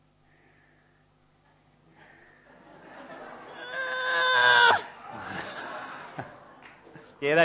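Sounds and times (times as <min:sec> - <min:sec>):
laughter: 0:02.4 - 0:07.2
woman's voice imitating a labour pain with a strained high-pitched wail: 0:03.5 - 0:05.6.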